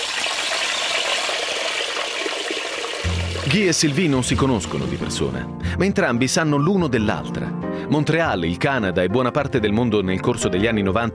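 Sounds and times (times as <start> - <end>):
water rushing: 0.0 - 5.3
speech: 3.5 - 11.1.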